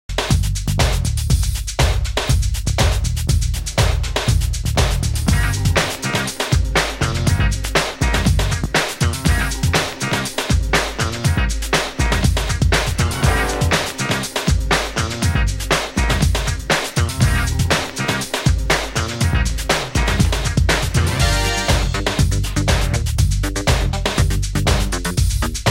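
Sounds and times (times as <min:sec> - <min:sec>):
instrumental music: 0:00.2 - 0:25.6.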